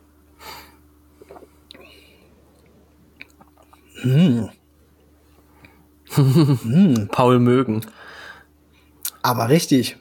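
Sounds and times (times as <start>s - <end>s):
person taking a sip of beer: 1.2s - 3.9s
speech: 4.0s - 4.6s, 6.2s - 8.0s, 9.2s - 10.0s.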